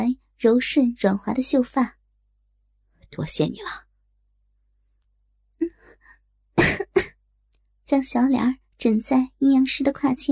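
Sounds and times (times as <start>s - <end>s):
speech: 0.0s - 2.0s, 3.1s - 3.9s, 7.9s - 10.3s
woman coughing hoarsely: 6.6s - 7.2s.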